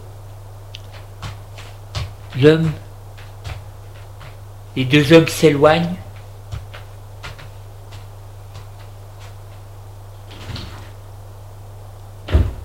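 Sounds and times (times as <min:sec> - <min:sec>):
low electrical hum: 0:00.0 - 0:12.6
speech: 0:02.4 - 0:02.8, 0:04.8 - 0:06.0
door closing with a heavy thud: 0:12.2 - 0:12.6.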